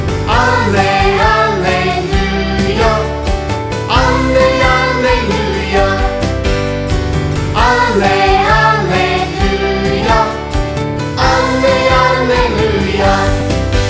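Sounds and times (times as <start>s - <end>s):
sung gospel acclamation: 0.2s - 3.2s, 3.8s - 6.4s, 7.5s - 13.8s.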